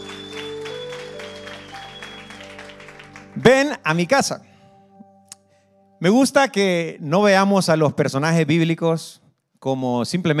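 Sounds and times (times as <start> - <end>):
crowd clapping in a large room: 0.0 - 4.0
organ-like tones humming: 0.0 - 4.2
speech: 3.4 - 4.5, 6.0 - 10.3.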